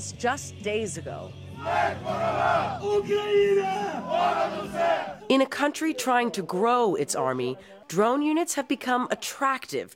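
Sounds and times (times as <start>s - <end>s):
speech: 0.0s - 9.9s
soldiers crowded around screens cheering each other on: 1.6s - 5.3s.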